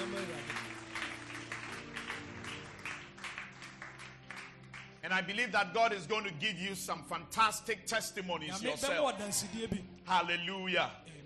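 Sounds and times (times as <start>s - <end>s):
audience clapping hands: 0.0s - 5.6s
speech: 5.0s - 11.2s.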